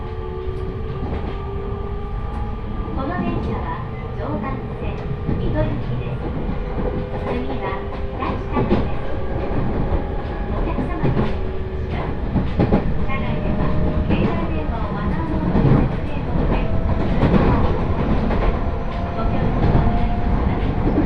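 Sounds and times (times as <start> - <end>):
Joban Line train running between Minaminakago and Katsuta: 0.0 - 21.0
train clacks and knocks: 4.9 - 21.0.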